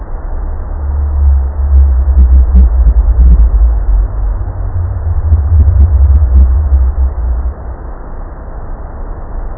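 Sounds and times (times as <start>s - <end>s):
pygmy blue whale nonsong calls: 0.4s - 7.8s.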